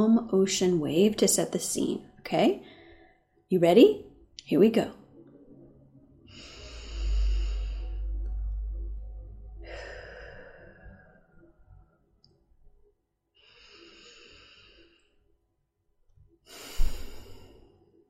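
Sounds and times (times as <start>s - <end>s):
speech: 0.0s - 2.7s, 3.5s - 5.0s
slow deep breath in and out: 2.6s - 3.4s, 5.5s - 12.0s, 13.3s - 15.4s, 16.4s - 18.0s.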